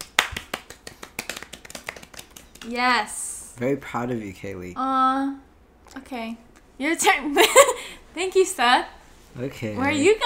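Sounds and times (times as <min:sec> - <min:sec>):
applause: 0:00.0 - 0:02.7
speech: 0:02.6 - 0:10.2.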